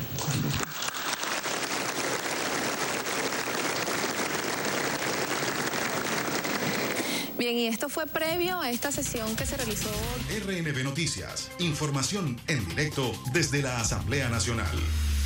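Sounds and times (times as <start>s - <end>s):
audience applause in parliament: 0.2s - 7.3s
speech: 7.4s - 15.1s.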